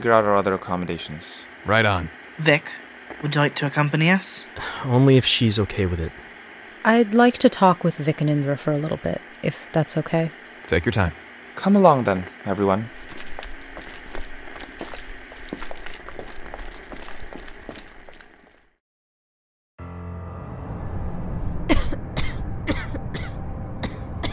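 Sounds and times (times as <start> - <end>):
speech: 0.0 - 13.2
person coughing and wheezing, struggling for breath: 21.7 - 24.3.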